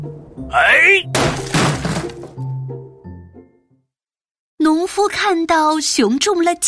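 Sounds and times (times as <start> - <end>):
speech: 0.4 - 1.5, 5.0 - 6.6
axe chopping down hard: 1.1 - 2.3.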